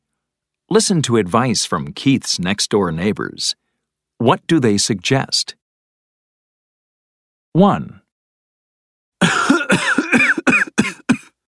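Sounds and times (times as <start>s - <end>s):
speech: 0.7s - 3.6s, 4.2s - 5.6s, 7.6s - 8.0s
person coughing from a cold: 9.2s - 11.3s.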